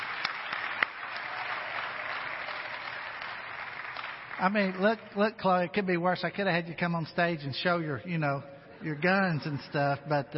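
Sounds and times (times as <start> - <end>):
audience clapping: 0.0 - 5.3
speech: 4.4 - 10.3.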